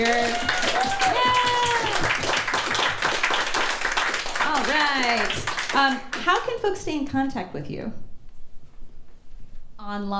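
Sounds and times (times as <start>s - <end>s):
audience cheering: 0.0s - 5.4s
audience applause: 0.0s - 6.5s
speech: 5.0s - 8.0s, 9.8s - 10.1s.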